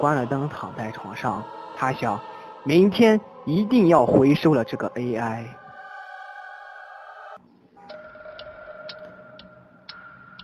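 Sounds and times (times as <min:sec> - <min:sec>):
speech: 0:00.0 - 0:05.6
clock ticking: 0:07.8 - 0:10.4.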